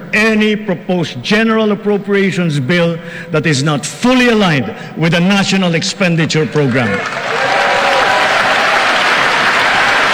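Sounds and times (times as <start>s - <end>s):
speech: 0.1s - 7.7s
crowd applause: 6.3s - 10.1s.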